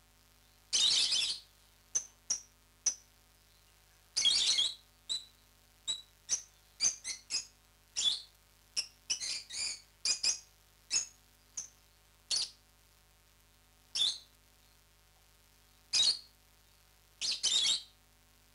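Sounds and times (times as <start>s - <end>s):
lovebird chirps, parrots Agapornis: 0.7s - 3.0s, 4.2s - 12.6s, 13.9s - 14.3s, 15.9s - 16.3s, 17.2s - 17.9s.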